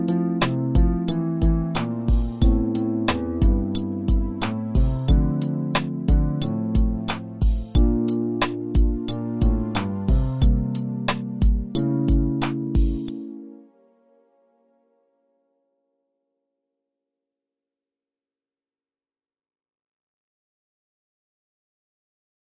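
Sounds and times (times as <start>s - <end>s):
fretless bass groove: 0.0s - 13.3s.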